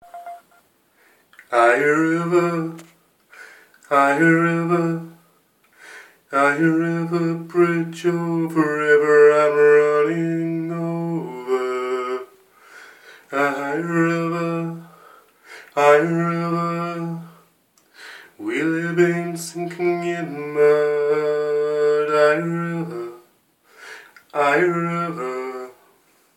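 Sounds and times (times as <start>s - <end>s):
improvised song sketch: 1.3s - 5.3s, 6.3s - 12.4s, 13.2s - 17.4s, 18.3s - 23.3s, 24.1s - 25.8s.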